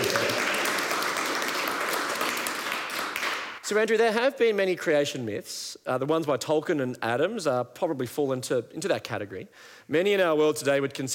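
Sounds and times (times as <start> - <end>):
audience round of applause: 0.0 - 3.6
speech: 3.7 - 11.1.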